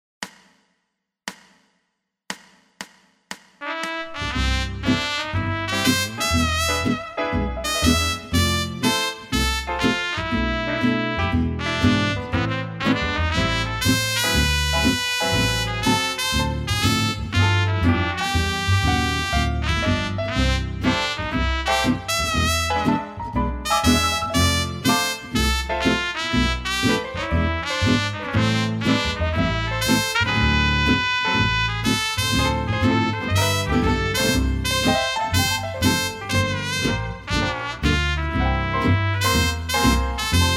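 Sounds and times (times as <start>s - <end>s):
trumpet: 3.6s - 40.5s.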